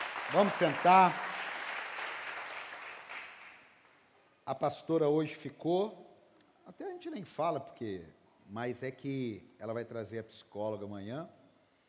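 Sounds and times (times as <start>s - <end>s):
applause: 0.0s - 4.0s
speech: 0.3s - 1.2s, 4.5s - 6.1s, 6.7s - 11.4s.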